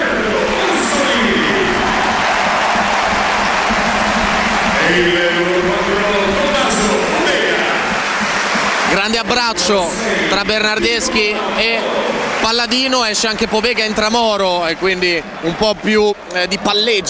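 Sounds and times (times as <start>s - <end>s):
stadium crowd applauding: 0.0s - 17.0s
speech: 9.3s - 17.0s.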